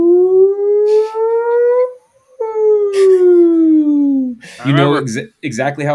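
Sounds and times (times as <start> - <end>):
voice imitating the crowd woo after a home run: 0.0 - 1.4, 2.9 - 5.0
speech: 4.6 - 5.9.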